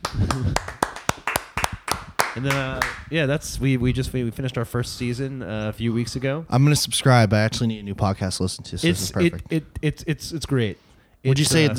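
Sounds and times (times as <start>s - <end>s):
sharp crisp hand claps: 0.0s - 3.1s
speech: 2.4s - 11.7s.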